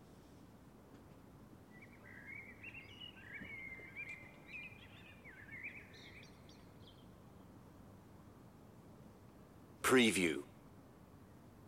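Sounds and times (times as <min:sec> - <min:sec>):
birds singing: 0:01.7 - 0:07.2
speech: 0:09.9 - 0:10.5.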